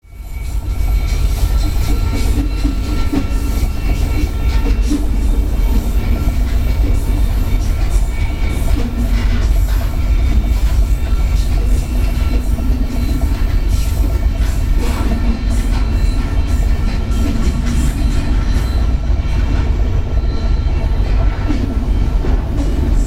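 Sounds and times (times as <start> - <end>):
train passing through Rocky Point tunnel: 0.0 - 23.0.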